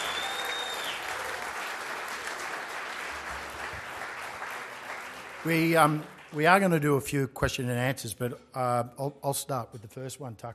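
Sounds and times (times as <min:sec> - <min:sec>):
audience applause: 0:00.0 - 0:06.8
speech: 0:05.4 - 0:10.5.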